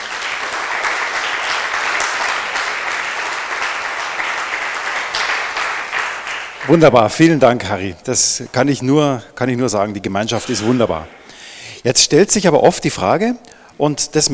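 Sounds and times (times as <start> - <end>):
crowd applause: 0.0 - 6.9
speech: 6.7 - 11.2, 11.8 - 14.3.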